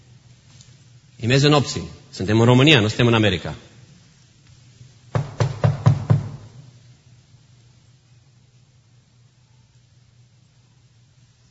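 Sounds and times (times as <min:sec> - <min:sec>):
speech: 0:01.2 - 0:03.7
knocking on a door at midnight: 0:05.1 - 0:06.7.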